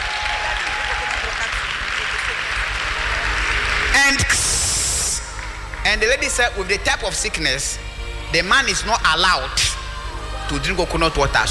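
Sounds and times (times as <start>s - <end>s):
audience clapping as an offering: 0.0s - 6.6s
speech: 5.9s - 9.7s, 10.5s - 11.4s.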